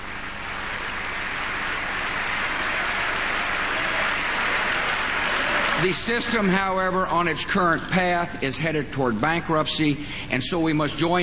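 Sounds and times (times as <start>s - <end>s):
applause in a legislative chamber: 0.0s - 6.5s
speech: 5.8s - 11.2s.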